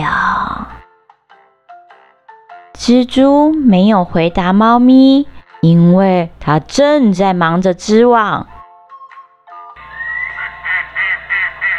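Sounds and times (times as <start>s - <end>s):
speech: 2.9s - 8.5s
duck quacking: 9.8s - 11.7s.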